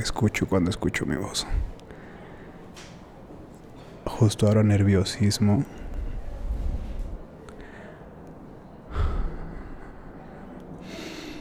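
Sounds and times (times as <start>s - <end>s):
speech: 0.0s - 1.7s, 4.2s - 5.8s
person breathing softly with a gasp-like intake: 1.5s - 2.8s, 5.7s - 8.2s, 8.8s - 11.3s.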